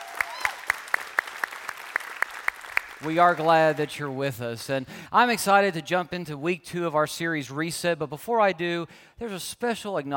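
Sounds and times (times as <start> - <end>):
applause at a church service: 0.0 - 4.1
speech: 3.0 - 10.1.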